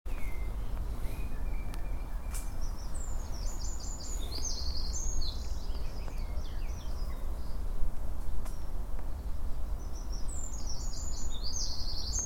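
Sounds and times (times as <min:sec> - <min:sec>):
Eurasian wren Troglodytes troglodytes song: 0:00.1 - 0:07.7, 0:08.6 - 0:12.2.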